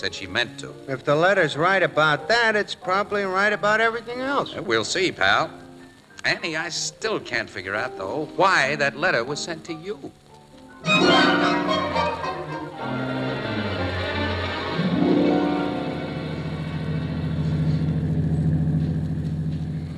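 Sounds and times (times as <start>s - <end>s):
speech: 0.0s - 5.6s, 6.2s - 10.2s
car engine humming as the car drives slowly through fog: 10.8s - 19.9s.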